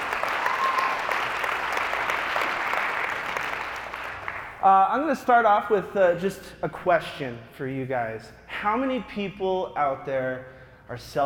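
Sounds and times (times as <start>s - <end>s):
audience applause: 0.0s - 4.6s
speech: 4.6s - 11.2s.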